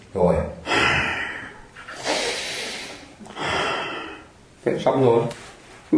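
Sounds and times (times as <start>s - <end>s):
speech: 0.1s - 0.6s, 4.6s - 5.9s
breathing in and out through nostrils: 0.7s - 4.3s.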